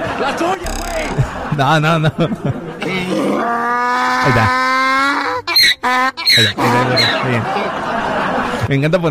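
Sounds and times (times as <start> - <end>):
laughter: 0.0 - 8.8
speech: 0.2 - 4.6, 5.8 - 8.0, 8.7 - 9.0
donkey braying: 2.8 - 7.4.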